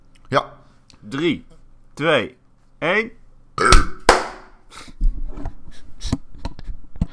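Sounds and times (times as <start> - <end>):
speech: 0.3 - 3.9
hand clap for syncing audio tracks: 4.0 - 4.6.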